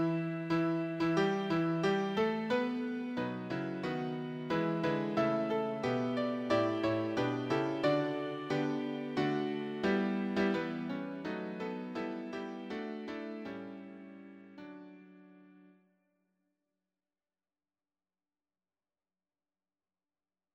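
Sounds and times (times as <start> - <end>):
piano: 0.0 - 15.8.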